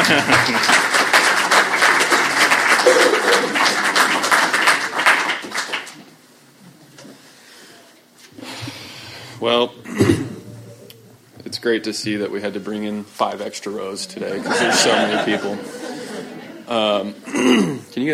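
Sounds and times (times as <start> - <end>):
laughter: 0.0 - 0.8, 14.2 - 17.3
audience clapping: 0.0 - 6.2
speech: 0.1 - 0.8, 9.4 - 10.2, 11.6 - 15.8, 16.7 - 18.1.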